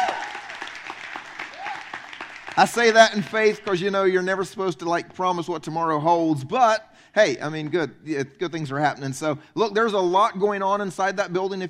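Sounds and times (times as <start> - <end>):
audience cheering: 0.0 - 4.0
speech: 2.6 - 11.6.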